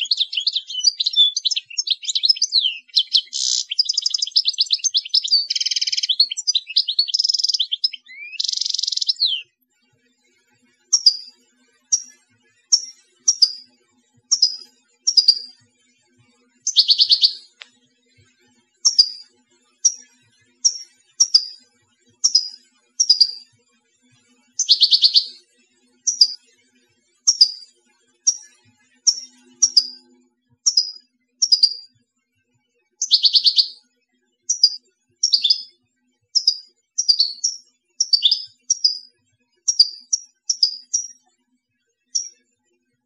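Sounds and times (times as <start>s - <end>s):
European goldfinch calling: 0.0s - 9.4s, 10.9s - 11.3s, 12.7s - 13.6s, 14.3s - 15.5s, 16.7s - 17.6s, 18.8s - 19.2s, 20.6s - 21.6s, 22.2s - 23.4s, 24.6s - 25.4s, 26.1s - 26.4s, 27.3s - 27.6s, 29.1s - 30.0s, 30.7s - 31.8s, 33.0s - 33.8s, 34.5s - 35.7s, 36.4s - 39.1s, 39.7s - 41.1s.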